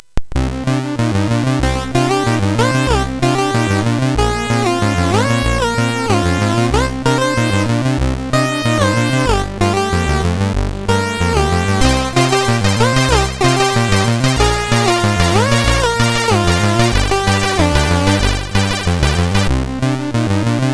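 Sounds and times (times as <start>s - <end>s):
MOS6581R4 SID chip intro music: 0.4s - 20.7s.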